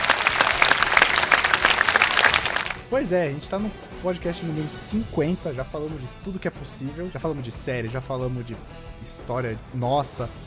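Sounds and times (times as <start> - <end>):
applause sound effect: 0.0 - 2.9
speech: 2.9 - 10.4.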